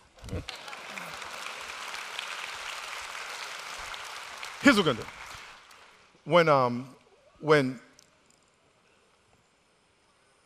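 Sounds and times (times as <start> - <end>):
audience applause: 0.0 - 6.1
speech: 4.6 - 5.2, 6.3 - 7.8.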